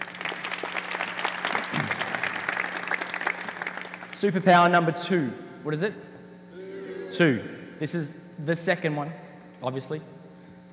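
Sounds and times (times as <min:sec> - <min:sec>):
crowd clapping: 0:00.0 - 0:04.5
speech: 0:04.2 - 0:06.1, 0:07.1 - 0:10.2.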